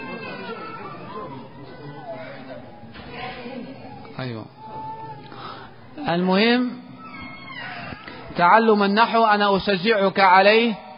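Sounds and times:
children chattering and playing in the audience: 0.0 - 8.5
speech: 4.2 - 4.6, 6.1 - 6.8, 8.4 - 10.8.

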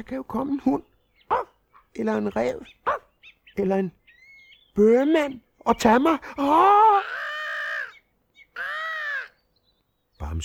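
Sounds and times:
speech: 0.0 - 3.0, 3.6 - 4.0, 4.8 - 7.3, 10.3 - 10.4
seagull crying high overhead: 6.4 - 9.4.

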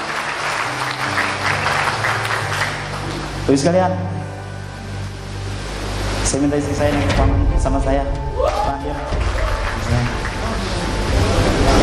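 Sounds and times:
audience applause at a network business gathering: 0.0 - 3.4, 8.4 - 11.8
speech: 3.5 - 4.2, 6.3 - 9.3.

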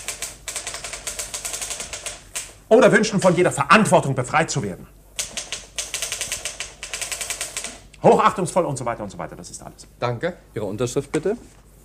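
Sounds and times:
typewriter keys clacking during dictation of a letter: 0.0 - 2.5, 5.2 - 7.8
speech: 2.7 - 5.0, 8.0 - 11.6.

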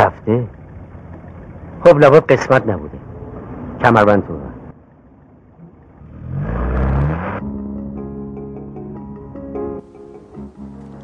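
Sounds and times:
speech: 0.2 - 0.6, 1.8 - 3.0, 3.8 - 4.5
car engine driving behind another car: 5.9 - 7.5.

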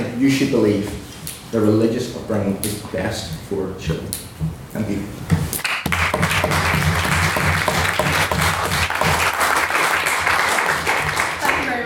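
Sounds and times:
speech: 0.2 - 5.3
audience applause: 5.6 - 11.7.

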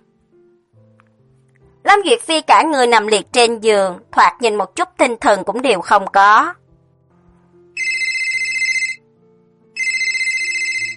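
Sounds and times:
quiet low background: 0.0 - 7.8
speech: 1.9 - 6.6
mobile phone ringtone for an incoming call: 7.8 - 9.1, 9.8 - 10.9.

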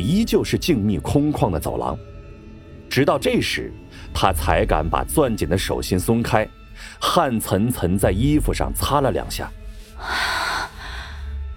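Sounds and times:
speech: 0.0 - 2.2, 2.9 - 10.3
person gasping for breath in relief: 9.9 - 11.3.

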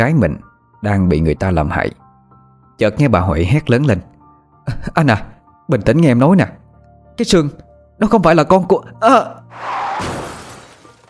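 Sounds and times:
speech: 0.0 - 2.0, 2.8 - 4.1, 4.7 - 6.6, 7.2 - 10.2
car crash heard over the phone: 9.5 - 11.0.

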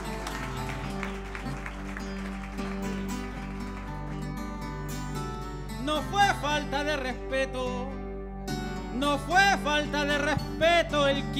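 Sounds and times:
audience applause: 0.0 - 4.7
speech: 5.9 - 8.0, 9.0 - 11.3.

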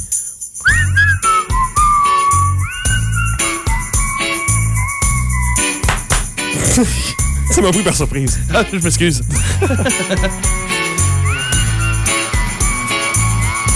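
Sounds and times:
person whistling a sliding wavering melody: 0.1 - 5.8, 6.6 - 7.7, 11.0 - 13.7
steady thumping rhythmic backing: 0.7 - 13.7
laughter: 6.6 - 7.8, 8.5 - 10.6
speech: 6.8 - 10.7.

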